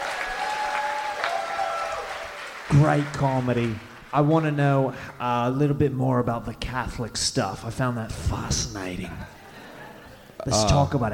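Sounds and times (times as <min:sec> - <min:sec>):
audience applause: 0:00.0 - 0:04.9
speech: 0:02.7 - 0:09.4, 0:10.4 - 0:11.1.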